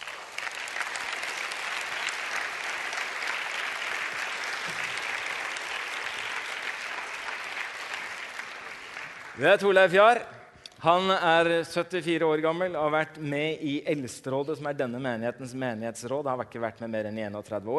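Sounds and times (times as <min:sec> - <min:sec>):
audience applause: 0:00.0 - 0:09.8
speech: 0:09.4 - 0:17.7.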